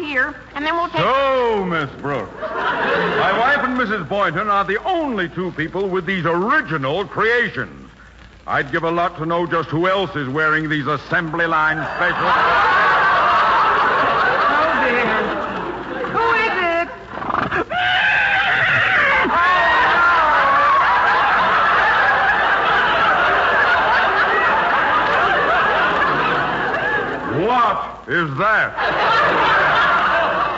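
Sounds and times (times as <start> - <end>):
speech: 0.1 - 7.8, 8.5 - 12.8, 28.3 - 29.4
laughter: 2.2 - 4.1, 11.4 - 28.0, 28.6 - 30.5
milkman's horse whinnying: 17.1 - 19.4.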